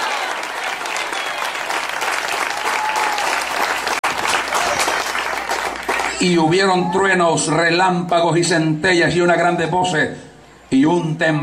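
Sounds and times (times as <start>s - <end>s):
audience applauding: 0.0s - 6.5s
speech: 6.2s - 11.4s.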